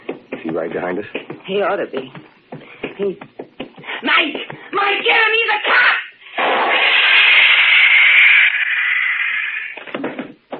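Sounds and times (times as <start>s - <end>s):
speech: 0.5s - 2.3s, 3.0s - 3.3s, 4.8s - 6.0s
stun gun blast: 6.3s - 9.8s.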